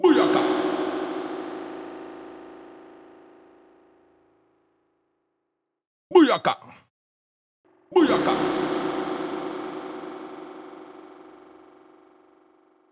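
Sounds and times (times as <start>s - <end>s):
H910 harmonizer effect: 0.0s - 4.6s, 7.7s - 12.9s.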